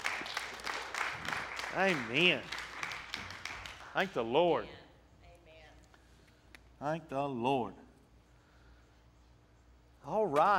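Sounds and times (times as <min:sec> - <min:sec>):
audience hand clapping: 0:00.0 - 0:04.6
speech: 0:01.8 - 0:02.6, 0:04.0 - 0:04.8, 0:06.8 - 0:07.8, 0:10.1 - 0:10.5.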